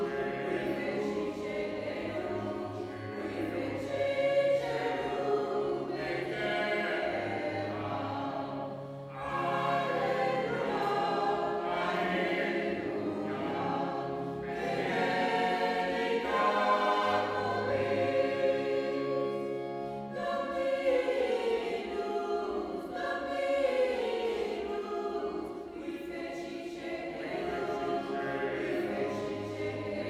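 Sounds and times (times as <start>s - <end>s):
Latin blessing at midnight mass: 0.0s - 30.0s.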